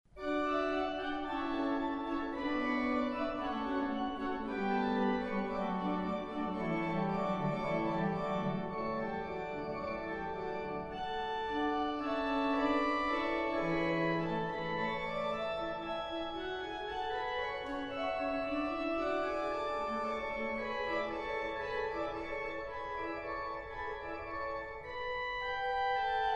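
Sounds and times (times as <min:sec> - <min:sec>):
fugue in D major: 0:00.1 - 0:26.3.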